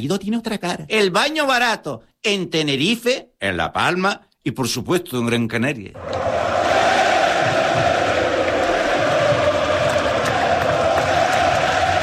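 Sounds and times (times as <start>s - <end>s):
speech: 0.0s - 6.4s
stadium crowd ovation for the Lazio farewell: 6.0s - 12.0s.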